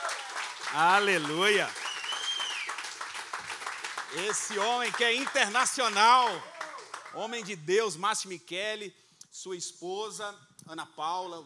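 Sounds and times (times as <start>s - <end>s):
audience applauding: 0.0s - 7.6s
speech: 0.7s - 1.8s, 4.1s - 6.5s, 7.1s - 11.4s.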